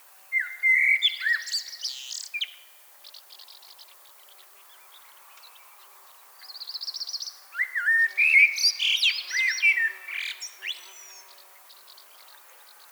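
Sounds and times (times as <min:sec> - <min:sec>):
Common blackbird song with trills and fluty whistles: 0:00.4 - 0:02.7, 0:06.6 - 0:12.1.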